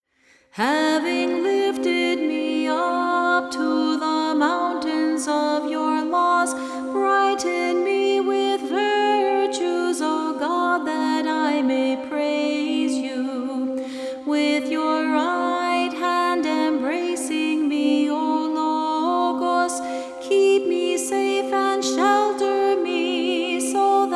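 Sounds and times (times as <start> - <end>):
antiphon chant: 0.6 - 24.1.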